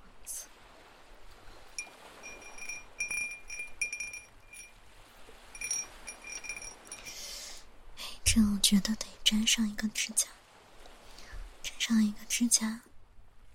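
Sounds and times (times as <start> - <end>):
soft steady hiss: 0.0 - 13.5
wind chime cup clinking: 1.8 - 4.8, 5.5 - 7.4
speech: 8.4 - 10.4, 11.9 - 12.9.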